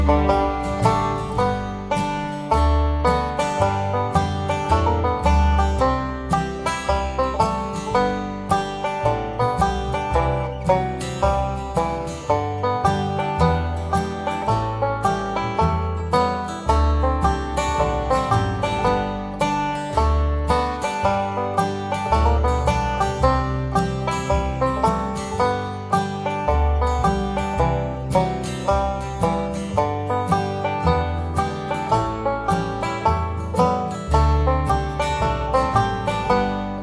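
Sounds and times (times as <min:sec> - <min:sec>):
fiddle tune: 0:00.0 - 0:36.8.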